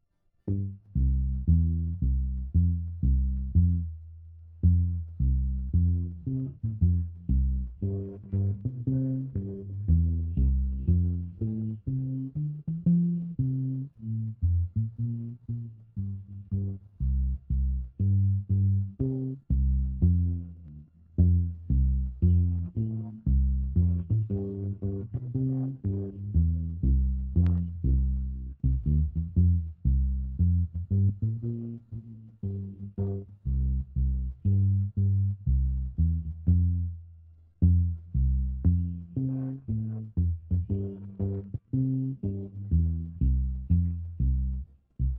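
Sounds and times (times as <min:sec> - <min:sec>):
bass: 0:00.0 - 0:45.1.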